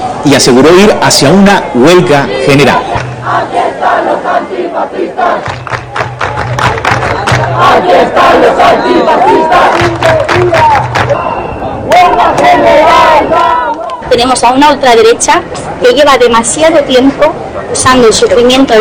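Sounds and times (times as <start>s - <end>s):
speech: 0.2s - 5.6s, 14.1s - 18.7s
protest crowd chanting slogans: 1.2s - 16.1s.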